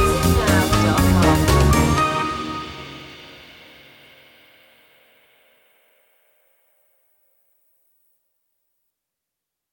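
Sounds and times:
jazzy music: 0.0 - 3.8.

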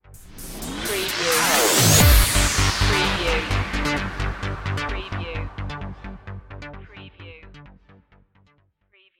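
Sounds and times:
electro symphony stinger: 0.1 - 6.8.

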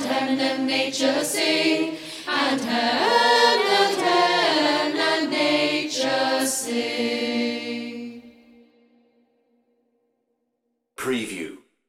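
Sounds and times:
choir singing a Christmas carol: 0.0 - 9.0.

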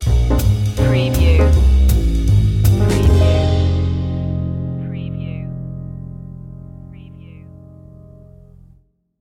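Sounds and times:
music stinger: 0.0 - 8.7.

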